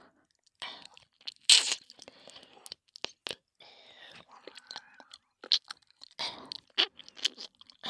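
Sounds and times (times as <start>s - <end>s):
binaural ear licking: 0.8s - 3.3s, 4.1s - 7.8s.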